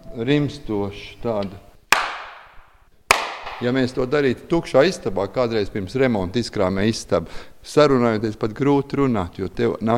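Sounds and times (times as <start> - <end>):
speech: 0.2 - 1.7, 3.6 - 9.9
hand clap in an acoustically damped room: 1.9 - 3.8.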